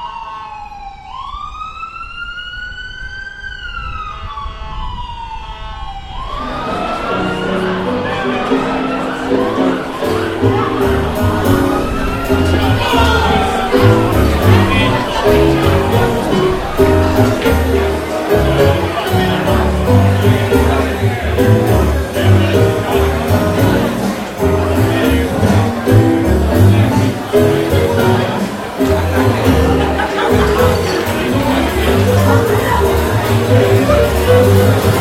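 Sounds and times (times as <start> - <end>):
siren wailing in New York: 0.0 - 14.2
street noise in New York: 0.0 - 35.0
dense crowd chatter in New York: 3.4 - 35.0
laughter: 6.4 - 35.0.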